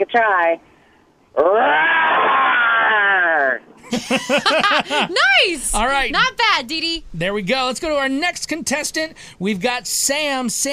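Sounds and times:
speech: 0:00.0 - 0:00.7, 0:01.4 - 0:02.0, 0:03.9 - 0:10.7
person imitating a lion roar: 0:01.6 - 0:03.6
laughter: 0:03.8 - 0:05.5.

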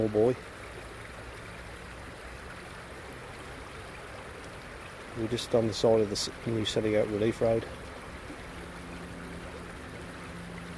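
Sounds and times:
speech: 0:00.0 - 0:00.6, 0:05.2 - 0:07.8
small stream flowing: 0:00.0 - 0:10.7.

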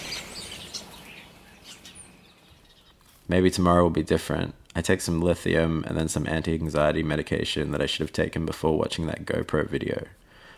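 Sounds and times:
birds: 0:00.0 - 0:03.2
speech: 0:03.3 - 0:10.2.

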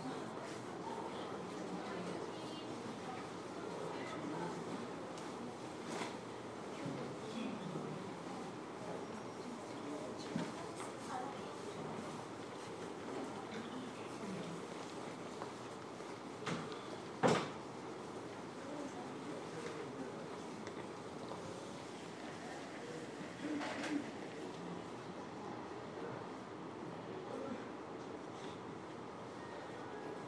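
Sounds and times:
ambient chatter in a Korean hospital: 0:00.0 - 0:30.2.

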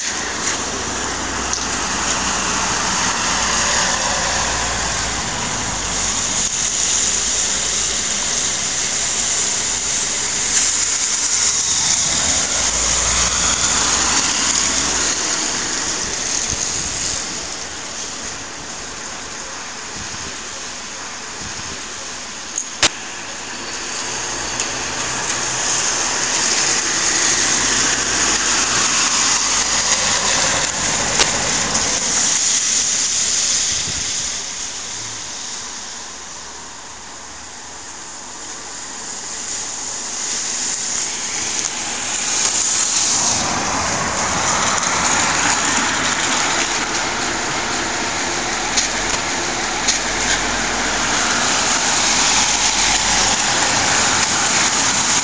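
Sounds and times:
Welsh town ambience: 0:00.0 - 0:55.2.

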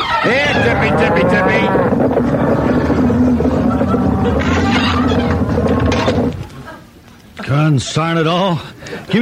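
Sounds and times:
cattle stampeding: 0:00.0 - 0:06.6
speech: 0:00.2 - 0:03.5, 0:04.2 - 0:05.2, 0:07.5 - 0:09.2.

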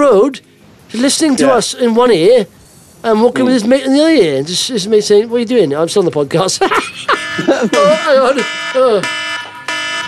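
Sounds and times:
speech: 0:00.1 - 0:09.2
laughter: 0:06.5 - 0:08.5
alarm going off: 0:07.1 - 0:10.0.

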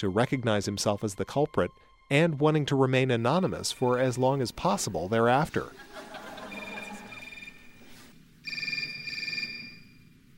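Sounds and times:
speech: 0:00.0 - 0:06.1
laughter: 0:05.6 - 0:07.4
mobile phone ringtones in a concert: 0:06.4 - 0:10.1.

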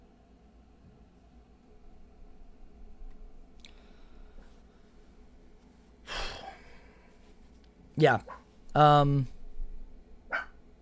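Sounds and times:
speech: 0:08.0 - 0:09.4
dog barking: 0:08.2 - 0:08.5, 0:10.3 - 0:10.6.

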